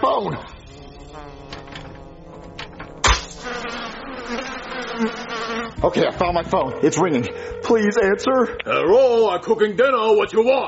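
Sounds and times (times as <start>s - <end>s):
speech: 0.2s - 1.4s, 5.8s - 10.6s
swarm of buzzing flies: 0.4s - 8.6s.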